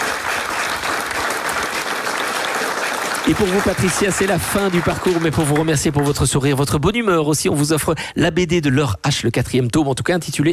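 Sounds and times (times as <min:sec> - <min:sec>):
audience applause: 0:00.0 - 0:06.4
speech: 0:03.3 - 0:10.5.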